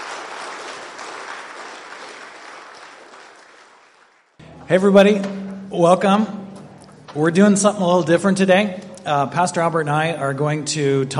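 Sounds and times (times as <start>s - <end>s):
audience applause: 0.0s - 4.4s
speech: 4.7s - 6.4s, 7.1s - 11.1s.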